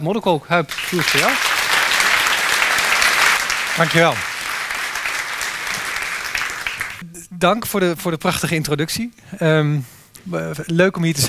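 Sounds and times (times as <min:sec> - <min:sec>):
speech: 0:00.0 - 0:01.6, 0:03.8 - 0:04.3, 0:07.4 - 0:11.2
audience applause: 0:00.6 - 0:07.0.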